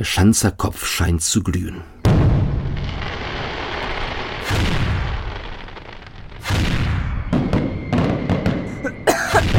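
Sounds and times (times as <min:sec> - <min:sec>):
speech: 0:00.0 - 0:02.0
fireworks rockets booming and crackling: 0:02.0 - 0:09.5.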